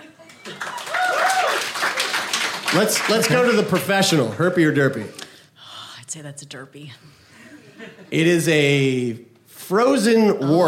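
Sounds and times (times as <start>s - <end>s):
audience applause: 0.0s - 4.4s
speech: 2.7s - 5.2s, 6.1s - 7.2s, 7.8s - 10.6s.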